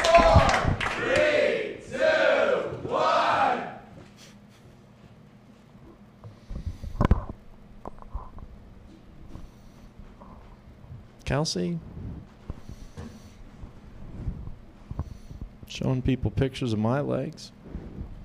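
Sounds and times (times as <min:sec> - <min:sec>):
comedy-show audience cheering and whooping for a comedian: 0:00.0 - 0:03.8
burst of audience shouting: 0:00.0 - 0:03.9
speech: 0:11.3 - 0:11.9, 0:15.9 - 0:17.6.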